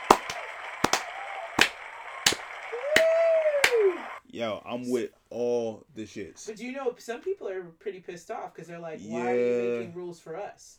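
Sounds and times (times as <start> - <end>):
slow handclaps: 0.0 - 4.0
rising-and-falling whoop or whistle: 2.7 - 4.2
speech: 4.4 - 10.7.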